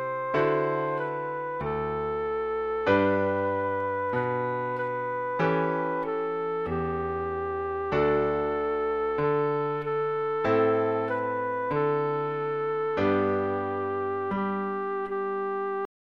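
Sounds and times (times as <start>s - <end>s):
piano: 0.0s - 15.9s
recorder melody: 0.0s - 15.9s.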